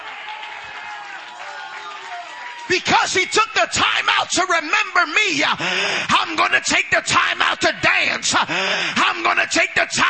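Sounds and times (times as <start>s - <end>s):
audience clapping: 0.0s - 3.6s
speech: 2.7s - 10.0s.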